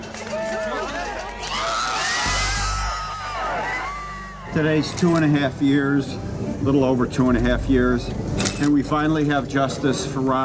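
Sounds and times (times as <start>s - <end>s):
large crowd cheering outside a courthouse: 0.0s - 5.5s
speech: 4.5s - 10.4s.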